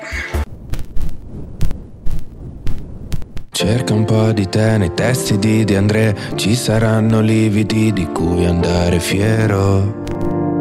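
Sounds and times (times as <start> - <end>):
loud record scratches: 0.0 - 3.6
low rumbling undertone: 0.5 - 3.6
vinyl crackle and hiss: 0.5 - 3.6, 10.0 - 10.4
speech: 3.6 - 10.3.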